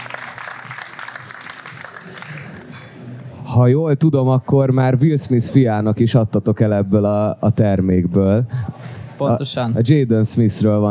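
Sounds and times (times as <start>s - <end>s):
audience applause: 0.0s - 2.8s
speech: 3.6s - 10.8s.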